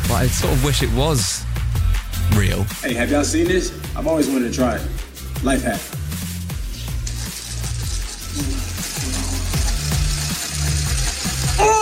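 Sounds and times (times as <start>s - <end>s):
speech: 0.2s - 1.5s, 2.3s - 6.0s
corn on the cob spun on a drill: 6.9s - 11.8s.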